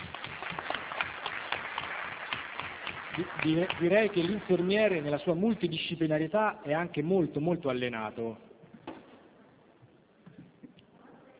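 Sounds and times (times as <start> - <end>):
audience applause: 0.0 - 5.3
speech: 3.2 - 8.5.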